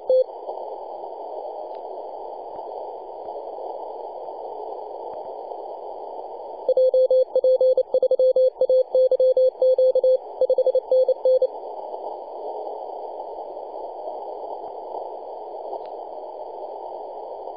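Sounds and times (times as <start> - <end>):
CW Morse code beeps: 6.7 - 11.5.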